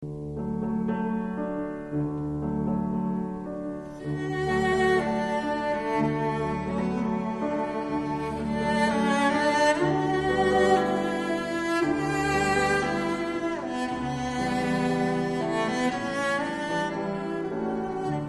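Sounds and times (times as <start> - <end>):
cello: 0.0 - 18.2.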